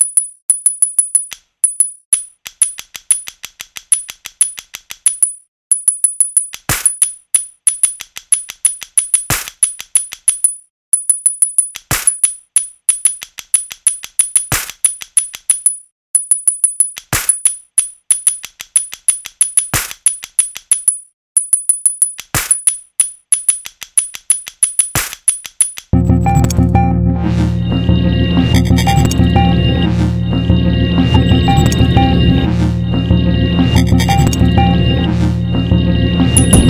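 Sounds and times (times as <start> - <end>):
beat made with iPhone BeatMaker: 26.0 - 36.6.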